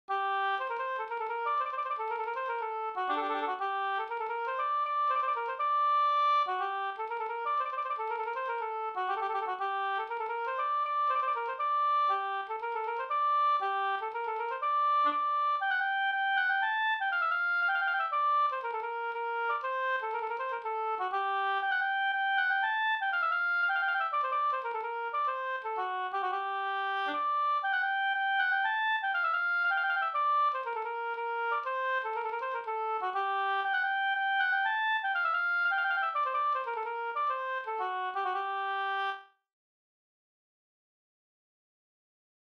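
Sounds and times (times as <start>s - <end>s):
polska folk dance tune: 0.1s - 39.2s.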